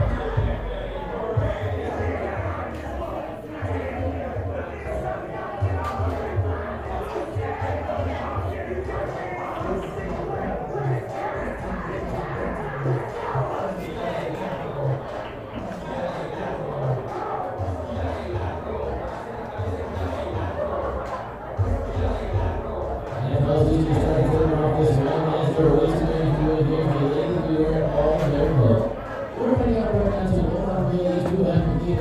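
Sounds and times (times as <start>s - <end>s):
laughter: 0.0s - 31.9s
strip club ambience: 0.0s - 31.9s.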